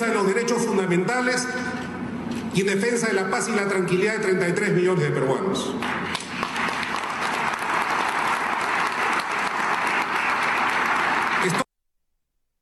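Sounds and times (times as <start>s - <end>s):
speech: 0.2s - 6.2s
large audience applause: 5.8s - 11.7s.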